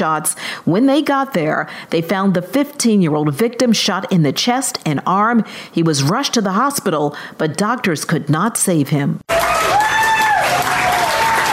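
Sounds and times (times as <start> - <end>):
speech: 0.0 - 9.2
crowd applause at outdoor rally: 9.3 - 11.5.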